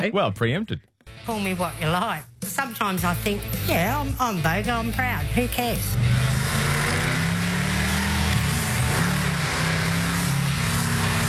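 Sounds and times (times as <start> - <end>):
speech: 0.0 - 6.3
muscle car engine revving and driving: 4.8 - 11.2.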